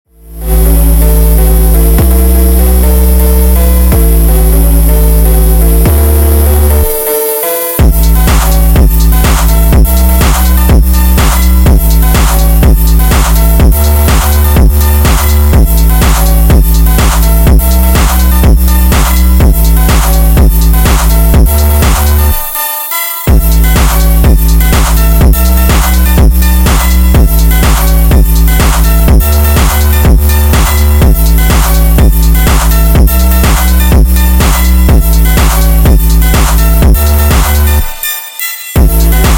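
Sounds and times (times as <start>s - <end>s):
phonk music for the gym: 0.0s - 39.3s.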